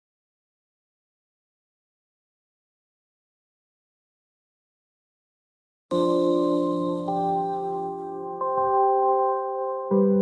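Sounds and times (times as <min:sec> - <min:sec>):
jingle: 0:05.9 - 0:10.1.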